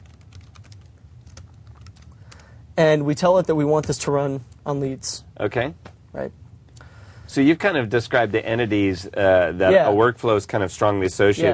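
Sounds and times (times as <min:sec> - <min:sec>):
typing a workflow name on a computer keyboard: 0:00.0 - 0:02.5
low hum: 0:00.0 - 0:11.5
speech: 0:02.8 - 0:06.4, 0:07.3 - 0:11.5.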